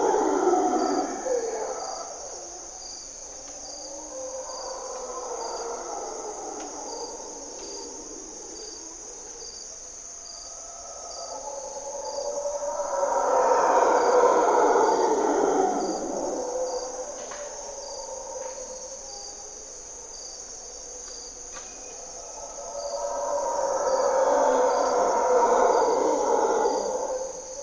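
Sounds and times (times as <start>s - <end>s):
Mantled Howler Monkeys grunting and calling in Corcovado morning twilight: 0.0s - 27.6s.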